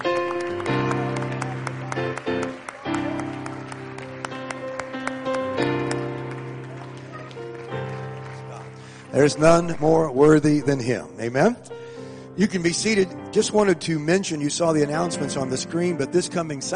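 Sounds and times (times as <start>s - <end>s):
audience clapping hands: 0.0s - 9.9s
speech: 9.2s - 11.7s, 12.4s - 16.7s.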